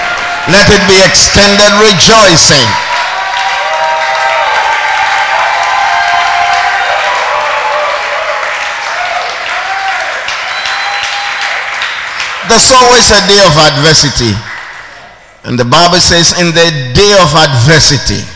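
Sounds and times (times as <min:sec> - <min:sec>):
audience clapping: 0:00.0 - 0:13.3
speech: 0:00.5 - 0:03.0, 0:12.5 - 0:14.5, 0:15.4 - 0:18.3.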